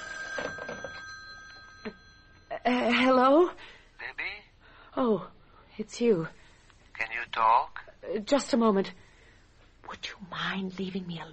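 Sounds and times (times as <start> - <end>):
telephone bell ringing: 0.0 - 3.0
speech: 5.0 - 6.4, 7.4 - 9.0, 10.0 - 11.3.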